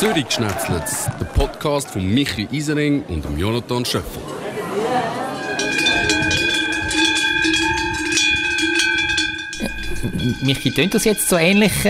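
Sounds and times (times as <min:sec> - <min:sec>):
speech: 0:00.0 - 0:04.4, 0:10.2 - 0:11.8
cowbells ringing: 0:05.2 - 0:11.8.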